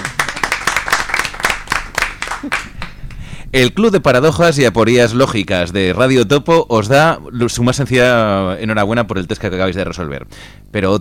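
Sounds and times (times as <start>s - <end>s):
hands clapping for guests after an absurd quiz: 0.0s - 3.2s
speech: 2.4s - 2.7s, 3.5s - 10.9s.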